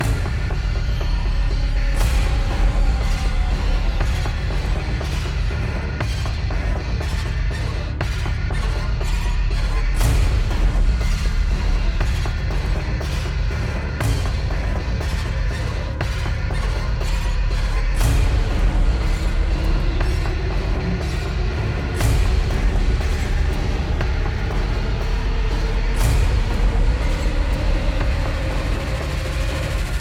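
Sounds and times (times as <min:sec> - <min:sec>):
percussion music loop: 0:00.0 - 0:30.0.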